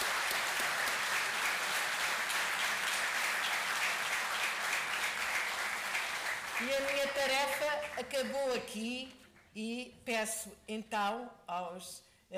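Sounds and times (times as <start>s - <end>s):
audience applause: 0.0s - 8.1s
speech: 6.6s - 12.3s.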